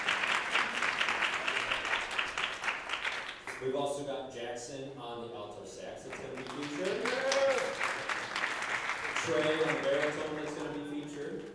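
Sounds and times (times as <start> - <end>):
crowd clapping: 0.0 - 3.7, 6.1 - 11.5
speech: 3.6 - 8.3, 9.2 - 11.5.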